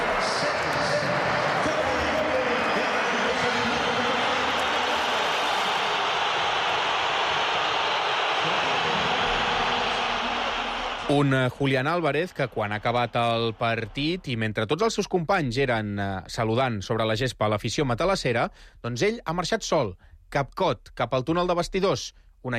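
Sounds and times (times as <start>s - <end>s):
football crowd booing a player: 0.0s - 14.3s
speech: 11.1s - 22.5s.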